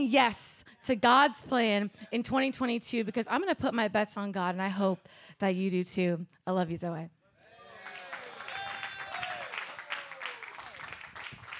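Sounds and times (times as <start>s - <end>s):
speech: 0.0s - 7.2s
cheering whoops: 7.5s - 11.0s
audience clapping: 7.7s - 11.5s.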